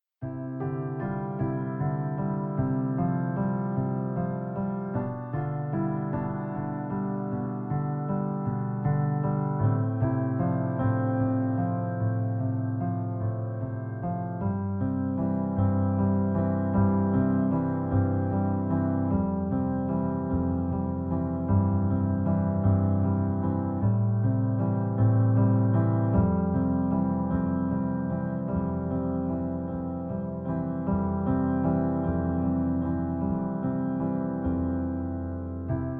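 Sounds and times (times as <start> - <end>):
piano: 0.0 - 35.9.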